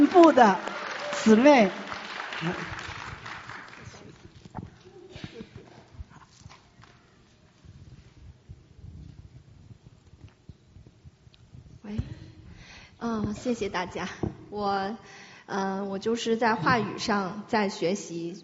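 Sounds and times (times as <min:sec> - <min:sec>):
speech: 0:00.0 - 0:01.8, 0:02.4 - 0:02.8, 0:13.3 - 0:18.4
audience applause: 0:00.0 - 0:05.0.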